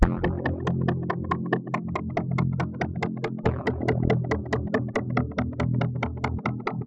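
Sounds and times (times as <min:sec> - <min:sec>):
polyphonic synth: 0:00.0 - 0:06.8.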